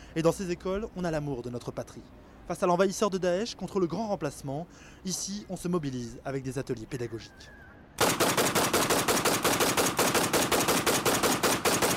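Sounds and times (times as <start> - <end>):
speech: 0.2 - 8.1
rapid automatic gunfire: 8.0 - 11.9.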